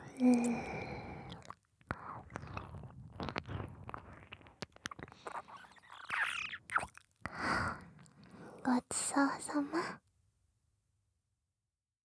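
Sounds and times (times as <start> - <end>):
ear licking: 0.0 - 8.6.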